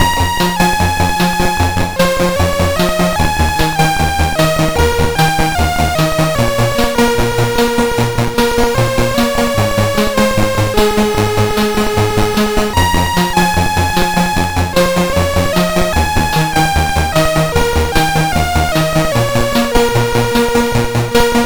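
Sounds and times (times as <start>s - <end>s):
synth sample on CSG8580R5 chip: 0.0s - 21.4s.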